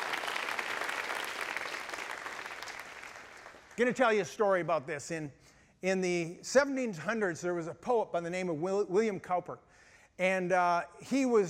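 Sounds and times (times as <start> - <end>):
crowd applause: 0.0 - 3.8
speech: 3.8 - 11.4.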